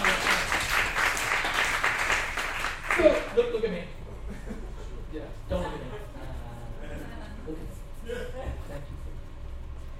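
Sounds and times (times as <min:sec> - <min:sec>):
smattering of applause: 0:00.0 - 0:03.5
speech: 0:03.0 - 0:04.0
laughter: 0:04.2 - 0:09.0.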